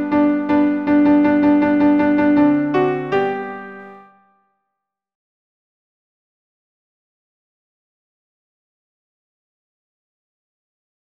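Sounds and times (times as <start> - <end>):
alto piano accompaniment: 0.0 - 4.4.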